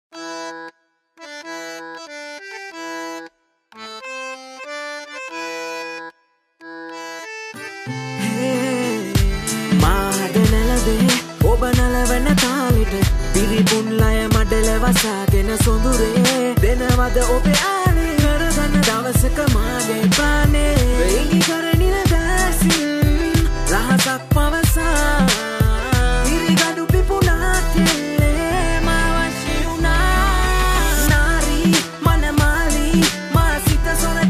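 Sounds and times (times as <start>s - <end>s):
Sinhala rap song: 8.2s - 34.2s.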